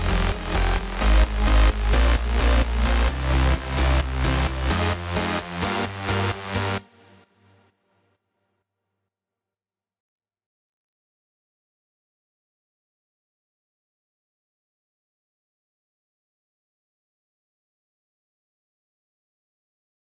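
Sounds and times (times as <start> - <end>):
main synths: 0.0 - 6.8
bass: 0.0 - 7.1.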